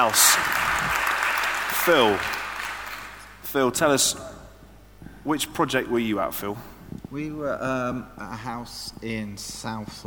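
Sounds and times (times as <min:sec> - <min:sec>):
speech: 0:00.0 - 0:01.0, 0:01.8 - 0:02.4, 0:03.5 - 0:04.4, 0:05.2 - 0:10.0
audience round of applause: 0:00.0 - 0:03.3.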